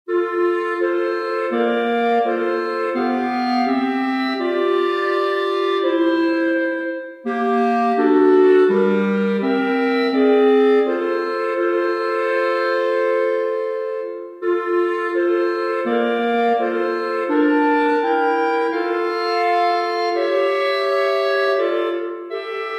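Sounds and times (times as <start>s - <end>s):
clarinet trio: 0.1s - 22.7s.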